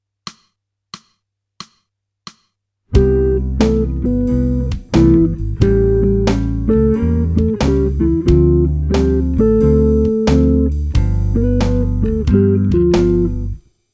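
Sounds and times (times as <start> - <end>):
jazz music: 3.0 - 13.6.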